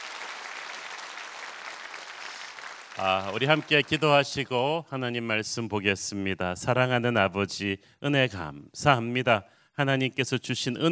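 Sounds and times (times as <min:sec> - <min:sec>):
audience applause: 0:00.0 - 0:04.3
speech: 0:03.0 - 0:10.8.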